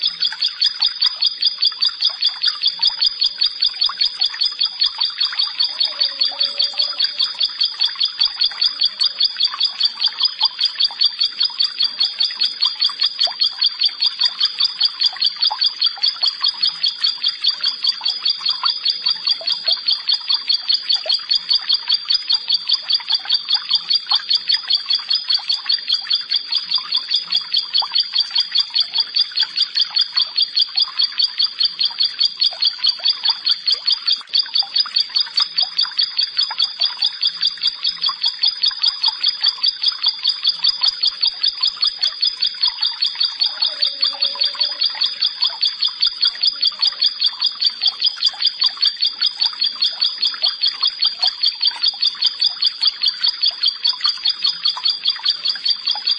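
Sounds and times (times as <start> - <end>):
faint chirps: 0.0 - 56.1
bar-winged prinia song: 5.4 - 7.7, 42.9 - 45.7.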